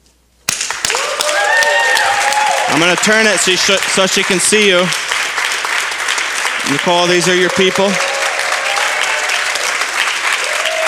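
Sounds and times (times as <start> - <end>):
group clapping for a friend in hospital: 0.5 - 10.8
group cheering with whooping voices: 0.9 - 3.3, 7.2 - 10.8
speech: 2.7 - 5.1, 6.7 - 8.1.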